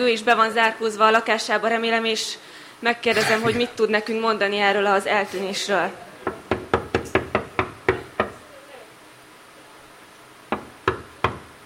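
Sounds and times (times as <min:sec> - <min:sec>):
speech: 0:00.0 - 0:06.1
knocking on an apartment door: 0:06.2 - 0:08.4, 0:10.5 - 0:11.5.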